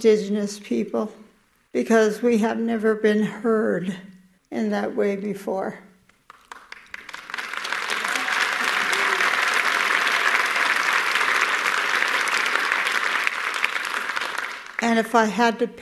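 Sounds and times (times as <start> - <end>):
speech: 0.0 - 5.9, 14.9 - 15.8
large audience applause: 6.3 - 14.8.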